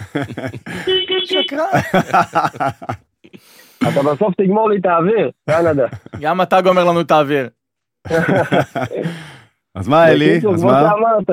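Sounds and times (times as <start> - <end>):
laughter: 0.0 - 3.1, 5.5 - 6.3, 8.1 - 9.3
speech: 0.1 - 11.3
car horn honk: 0.7 - 1.8.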